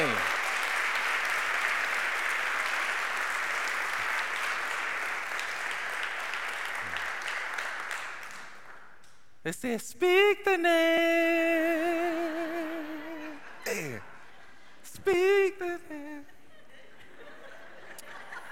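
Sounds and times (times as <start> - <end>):
audience applause: 0.0 - 8.8
speech: 9.5 - 11.9, 14.9 - 16.1
laughter: 12.7 - 18.5.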